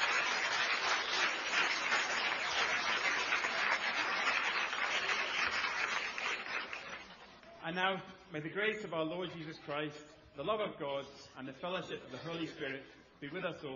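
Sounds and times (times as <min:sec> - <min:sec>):
round of applause: 0:00.0 - 0:07.6
speech: 0:07.7 - 0:13.7.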